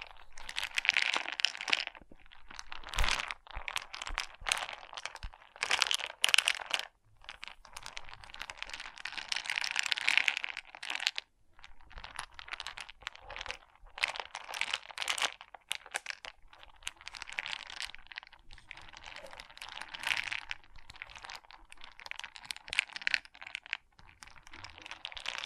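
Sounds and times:
pixel art beads rattling and clattering: 0:00.0 - 0:11.2, 0:11.8 - 0:25.4.

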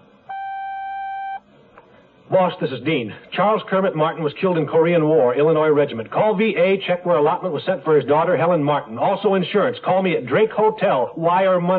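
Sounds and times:
answering machine beep: 0:00.3 - 0:01.4
speech: 0:02.3 - 0:11.7.

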